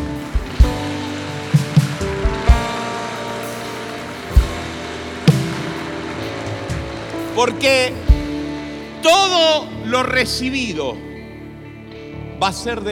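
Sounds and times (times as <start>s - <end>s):
audience applause: 0.0s - 10.3s
sustained musical tone humming: 0.0s - 12.1s
speech: 7.4s - 8.2s, 9.0s - 11.1s, 12.4s - 12.9s.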